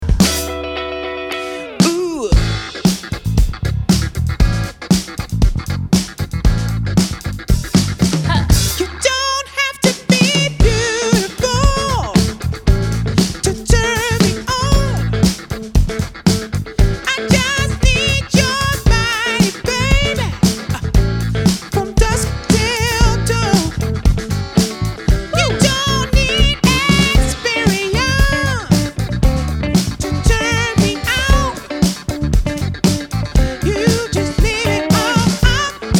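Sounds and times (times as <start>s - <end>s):
funk music: 0.0s - 35.9s.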